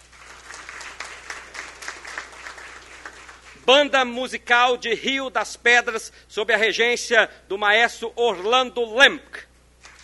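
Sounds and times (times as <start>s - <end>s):
audience applause: 0.0s - 3.6s
speech: 3.7s - 9.4s.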